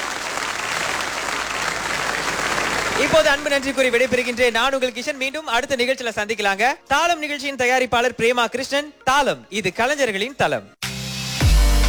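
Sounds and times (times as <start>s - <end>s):
audience applause at the close of a music program: 0.0s - 5.0s
speech: 3.0s - 10.8s.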